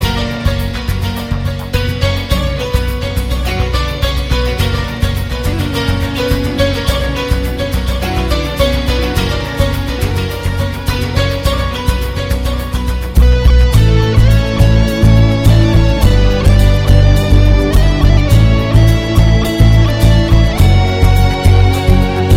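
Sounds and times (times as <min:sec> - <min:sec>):
blend of piano music: 0:00.0 - 0:22.3.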